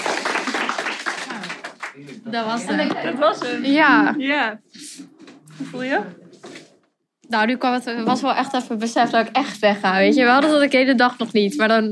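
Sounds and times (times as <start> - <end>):
applause: 0.0 - 2.2
speech: 2.0 - 6.2, 7.3 - 11.9.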